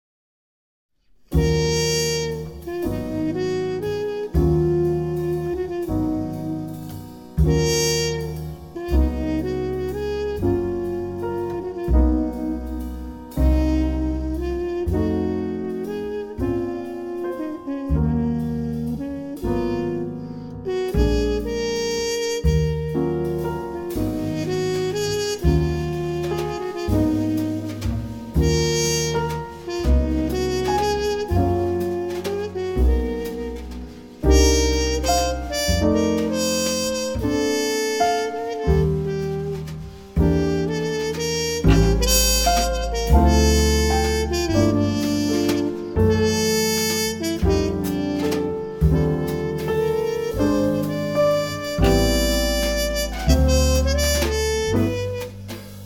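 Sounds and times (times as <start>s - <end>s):
waltz music: 1.4s - 55.8s.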